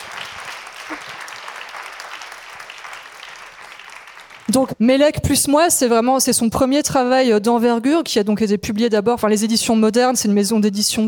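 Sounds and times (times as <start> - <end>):
audience applause: 0.0 - 4.5
speech: 4.5 - 11.0.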